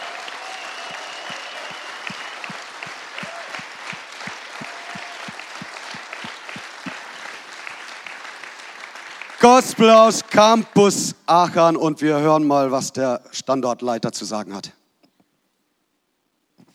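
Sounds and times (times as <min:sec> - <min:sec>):
audience applause: 0:00.0 - 0:10.6
speech: 0:09.5 - 0:14.8.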